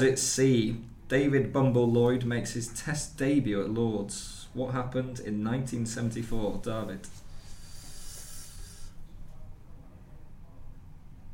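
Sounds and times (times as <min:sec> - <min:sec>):
speech: 0:00.0 - 0:07.2
sharp intake of breath during a cricket quiz: 0:07.1 - 0:09.0.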